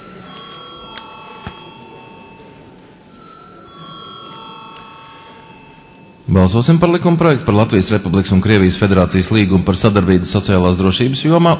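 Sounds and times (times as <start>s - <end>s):
bell rung to call a parliamentary vote: 0.0s - 6.8s
speech: 6.3s - 11.5s.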